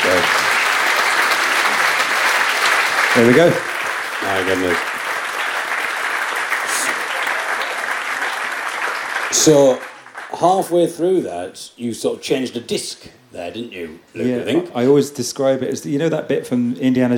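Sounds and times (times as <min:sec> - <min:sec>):
audience applause: 0:00.0 - 0:10.7
speech: 0:03.2 - 0:04.9, 0:09.4 - 0:17.1.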